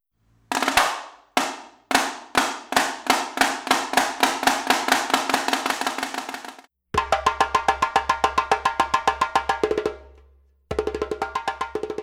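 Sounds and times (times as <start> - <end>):
snare drum: 0.5 - 6.7
djembe: 0.5 - 12.0.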